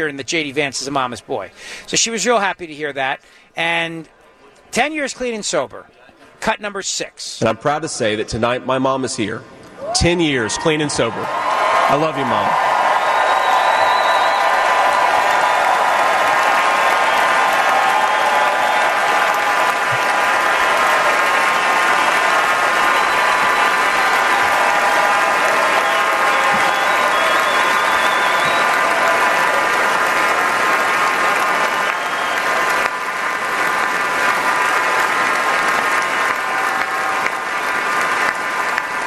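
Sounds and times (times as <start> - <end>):
speech: 0.0 - 12.7
crowd applauding in a standing ovation: 10.7 - 39.0.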